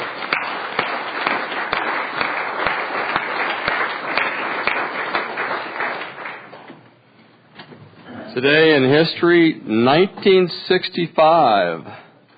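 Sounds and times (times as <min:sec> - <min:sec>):
audience applause welcoming the nurse of the day: 0:00.0 - 0:06.7
speech: 0:08.4 - 0:12.0.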